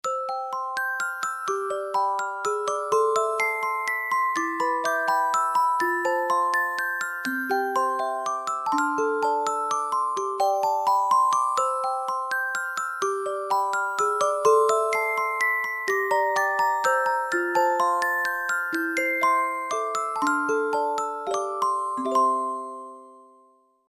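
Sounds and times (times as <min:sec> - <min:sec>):
music box: 0:00.0 - 0:23.8.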